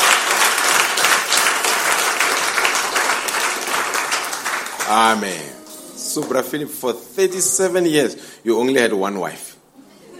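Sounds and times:
audience clapping: 0.0 - 6.6
speech: 4.9 - 9.6.

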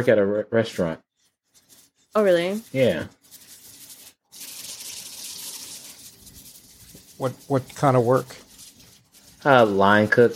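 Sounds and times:
speech: 0.0 - 1.0, 2.1 - 3.2, 7.2 - 8.4, 9.4 - 10.3
running tap water splashing while washing food in a kitchen: 4.3 - 7.9.

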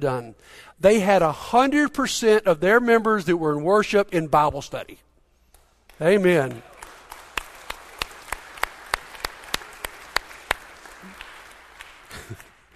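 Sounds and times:
speech: 0.0 - 5.1, 6.0 - 6.7
sparse audience applause: 6.4 - 12.7.

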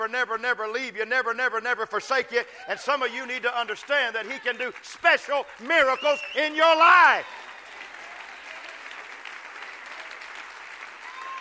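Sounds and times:
speech: 0.0 - 7.5
audience applause: 3.2 - 11.3.

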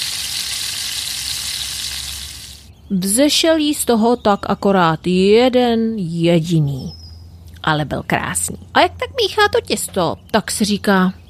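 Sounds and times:
lard sizzling as a doughnut fries: 0.0 - 2.7
speech: 2.9 - 7.0, 7.6 - 11.2.

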